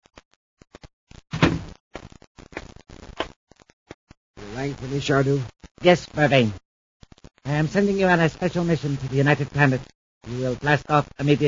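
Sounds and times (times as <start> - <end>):
door knocks and scrapes: 1.4 - 1.7
speech: 4.6 - 6.6, 7.5 - 11.4.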